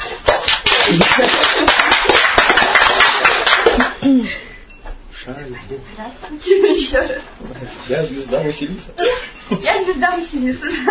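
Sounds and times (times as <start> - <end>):
audience applause: 0.0 - 4.0
speech: 1.0 - 1.6, 5.6 - 10.9.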